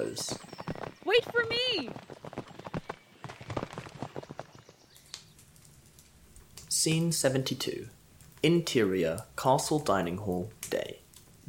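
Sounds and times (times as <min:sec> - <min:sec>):
horse hooves cantering: 0:00.0 - 0:06.5
speech: 0:00.1 - 0:00.5, 0:01.1 - 0:02.2, 0:06.8 - 0:11.0.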